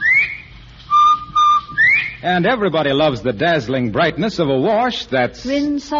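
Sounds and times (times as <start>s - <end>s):
bobwhite quail whistle call: 0.0s - 2.2s
speech: 2.2s - 5.9s.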